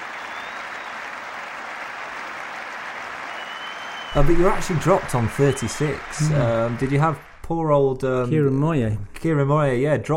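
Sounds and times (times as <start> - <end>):
cricket crowd and players applauding: 0.0 - 7.7
speech: 4.1 - 10.1.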